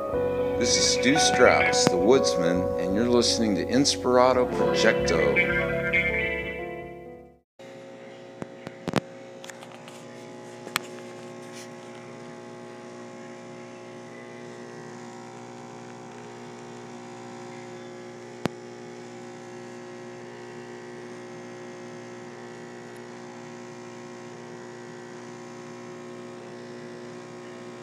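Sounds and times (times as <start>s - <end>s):
speech: 0.6s - 6.0s
high-tech espresso machine running: 7.6s - 27.8s.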